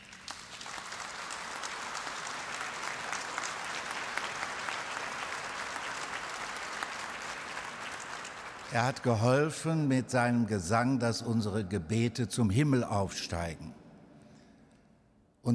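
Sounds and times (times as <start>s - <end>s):
audience applause in a church: 0.0s - 9.0s
speech: 8.7s - 13.8s.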